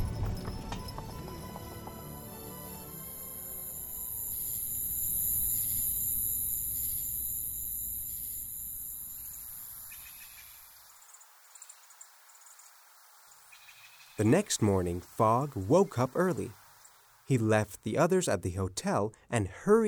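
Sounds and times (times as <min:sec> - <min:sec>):
horse hooves clip-clopping as a carriage travels through New York City: 0:00.0 - 0:03.5
speech: 0:14.2 - 0:16.6, 0:17.3 - 0:19.8.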